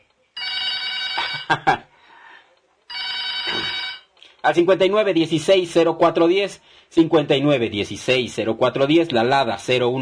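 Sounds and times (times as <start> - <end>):
telephone bell ringing: 0.4 - 1.6, 2.9 - 4.1
speech: 1.5 - 1.8, 4.4 - 10.0.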